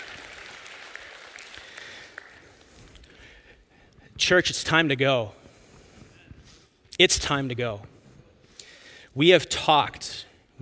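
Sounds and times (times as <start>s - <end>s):
round of applause: 0.0s - 2.7s
speech: 4.2s - 5.4s, 7.0s - 8.0s, 9.2s - 10.6s.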